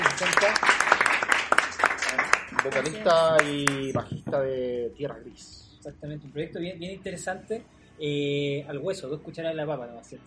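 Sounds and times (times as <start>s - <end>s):
applause: 0.0s - 4.0s
speech: 0.2s - 0.8s, 2.6s - 10.2s.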